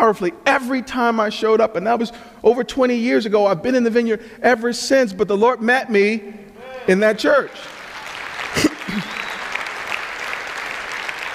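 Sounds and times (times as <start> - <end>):
speech: 0.0 - 7.8
audience clapping: 7.6 - 11.3.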